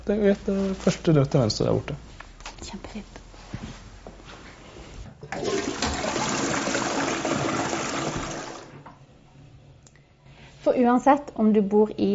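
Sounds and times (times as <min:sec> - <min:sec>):
speech: 0:00.1 - 0:03.2, 0:10.7 - 0:12.1
toilet flushing: 0:05.2 - 0:09.0.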